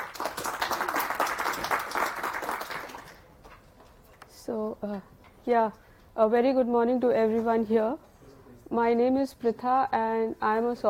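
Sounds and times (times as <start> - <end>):
audience applause at a software conference talk on storage systems: 0.0 - 3.2
speech: 4.5 - 8.0, 8.7 - 10.8.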